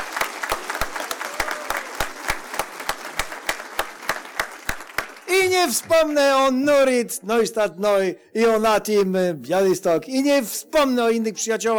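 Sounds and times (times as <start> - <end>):
audience applause: 0.0 - 6.1
speech: 5.5 - 11.7.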